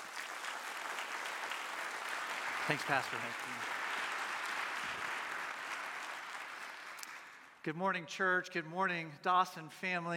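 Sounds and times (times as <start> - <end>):
church congregation applauding to welcome a guest speaker: 0.0 - 7.6
speech: 2.7 - 3.8, 7.6 - 10.1.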